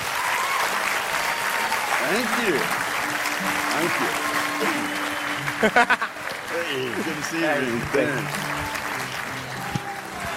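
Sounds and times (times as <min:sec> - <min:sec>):
audience in Sydney clapping to welcome a guest speaker: 0:00.0 - 0:10.3
laughter: 0:00.8 - 0:10.3
speech: 0:02.0 - 0:05.0, 0:05.6 - 0:08.5.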